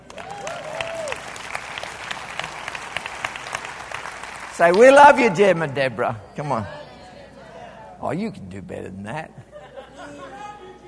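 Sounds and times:
audience applauding: 0:00.0 - 0:05.6
speech: 0:04.6 - 0:06.8, 0:08.0 - 0:09.5
laughter: 0:09.4 - 0:10.8.

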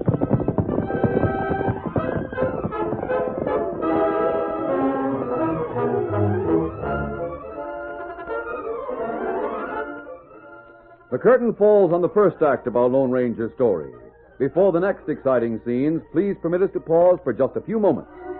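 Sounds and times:
galloping horses' hooves as riders set off: 0:00.0 - 0:06.9
dramatic orchestral music in a western adventure drama: 0:00.0 - 0:10.6
speech: 0:11.1 - 0:18.3.

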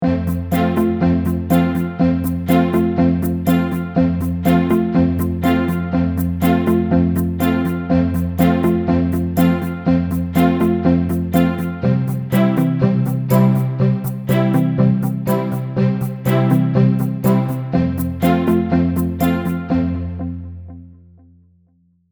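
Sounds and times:
ukulele without melody: 0:00.3 - 0:20.4.

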